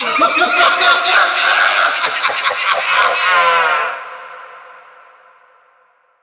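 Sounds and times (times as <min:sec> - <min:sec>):
person laughing: 0:00.0 - 0:03.9.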